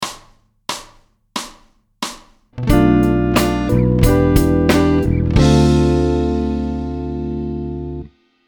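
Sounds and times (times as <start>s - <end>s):
musical chord: 2.6s - 8.1s.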